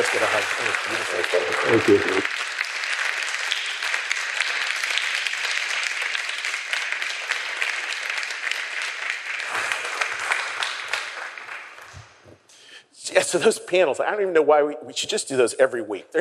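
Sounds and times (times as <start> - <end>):
audience applause: 0.0 - 12.3
speech: 0.1 - 2.5, 13.3 - 16.1.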